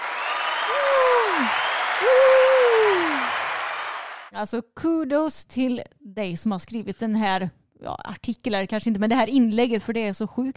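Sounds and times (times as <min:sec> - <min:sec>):
applause sound effect from soundboard button: 0:00.0 - 0:04.3
speech: 0:04.4 - 0:10.5.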